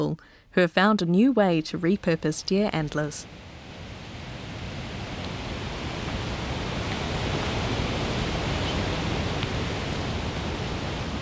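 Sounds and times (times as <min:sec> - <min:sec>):
speech: 0:00.0 - 0:03.5
rushing Motu Falls waterfall northwest of Gisborne: 0:03.2 - 0:11.2.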